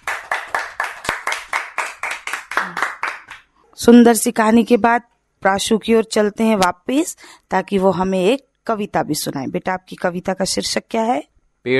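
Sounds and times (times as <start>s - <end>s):
loud clapping for a child's story: 0.0s - 3.5s
speech: 3.8s - 11.7s.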